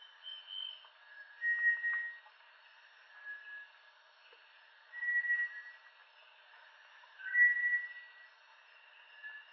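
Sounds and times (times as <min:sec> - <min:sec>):
Bartlett's tinamou calling with soft even whistles: 0:00.0 - 0:02.3, 0:04.9 - 0:05.8, 0:07.2 - 0:08.2.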